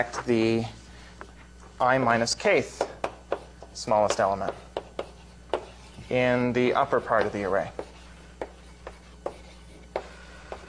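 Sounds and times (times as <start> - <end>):
speech: 0.0 - 0.8, 1.8 - 2.8, 3.8 - 4.7, 6.1 - 7.8
faint steady hum: 0.0 - 10.6
chalk or marker writing on a board during a lecture: 2.8 - 10.6.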